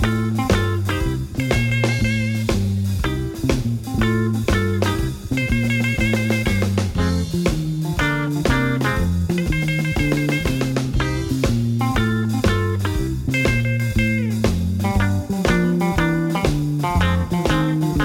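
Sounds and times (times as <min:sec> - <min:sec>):
Texas style blues drumming: 0:00.0 - 0:18.0.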